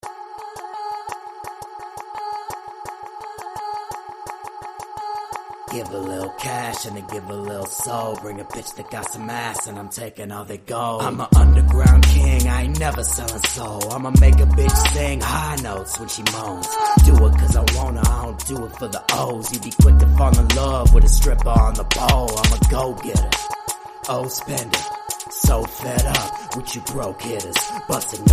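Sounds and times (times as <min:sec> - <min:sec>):
hip hop rap remix: 0:00.0 - 0:28.3.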